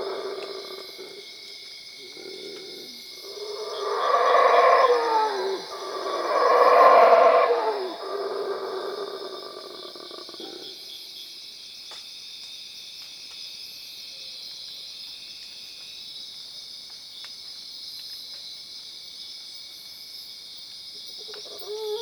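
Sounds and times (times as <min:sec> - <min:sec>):
howler monkey howling at Cuevas: 0:02.1 - 0:10.6, 0:21.4 - 0:22.0.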